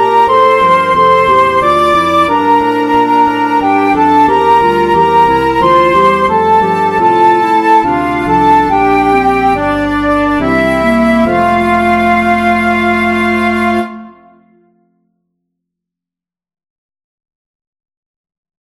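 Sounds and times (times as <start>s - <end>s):
carol backing track: 0.0s - 14.6s.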